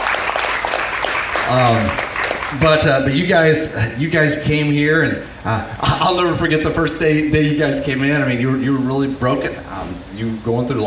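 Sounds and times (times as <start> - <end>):
audience round of applause: 0.0 - 3.1
speech: 1.5 - 10.8.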